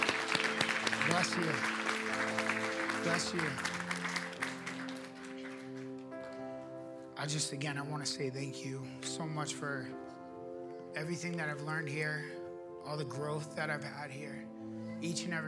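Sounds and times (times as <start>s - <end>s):
audience applauding: 0.0s - 6.5s
speech: 1.1s - 1.8s, 3.0s - 3.8s, 7.2s - 10.0s, 11.0s - 15.4s.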